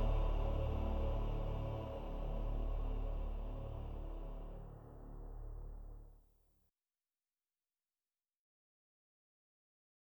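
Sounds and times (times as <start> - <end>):
synth demo theme: 0.0 - 6.1.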